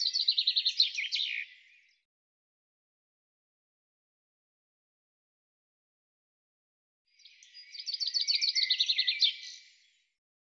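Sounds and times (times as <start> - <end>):
bird song: 0.0 - 2.1, 7.1 - 10.2.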